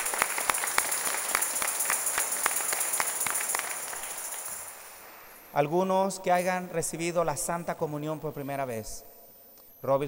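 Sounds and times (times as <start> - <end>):
audience applause: 0.0 - 5.1
speech: 5.5 - 9.1, 9.8 - 10.0.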